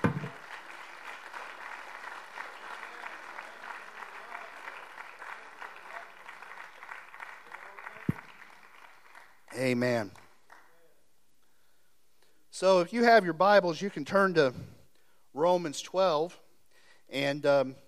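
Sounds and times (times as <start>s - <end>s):
audience hand clapping of praise: 0.0s - 10.9s
speech: 9.6s - 10.2s, 12.6s - 14.8s, 15.4s - 16.4s, 17.1s - 17.8s.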